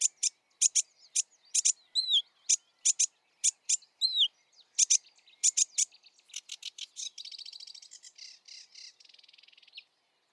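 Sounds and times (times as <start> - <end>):
sedge warbler singing: 0.0 - 7.9.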